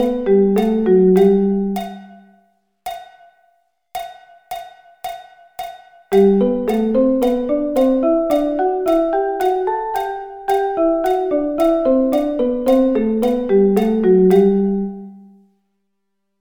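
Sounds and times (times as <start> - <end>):
musical thirds: 0.0 - 2.2, 6.2 - 15.2.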